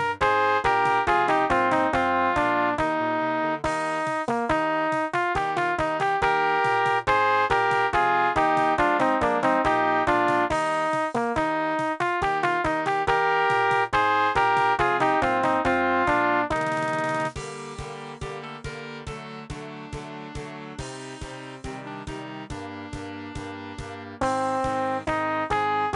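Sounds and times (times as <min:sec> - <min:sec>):
trumpet: 0:00.2 - 0:17.4, 0:24.2 - 0:25.9.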